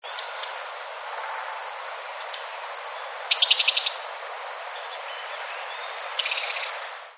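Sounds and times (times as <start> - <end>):
Blue-and-white flycatcher chirping song: 0.0 - 0.6, 2.1 - 7.1
steady hiss: 0.0 - 7.1.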